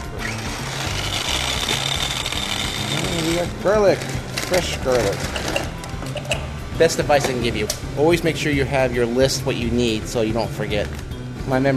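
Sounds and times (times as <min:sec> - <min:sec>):
motor-driven meat grinder grinding pork for garlic sausage: 0:00.0 - 0:04.5
speech: 0:03.2 - 0:05.5, 0:06.8 - 0:11.7.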